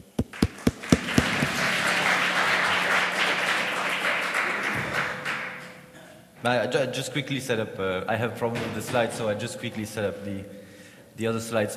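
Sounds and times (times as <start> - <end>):
audience applause welcoming a speaker: 0.2 - 5.8
speech: 6.4 - 10.6, 11.2 - 11.7.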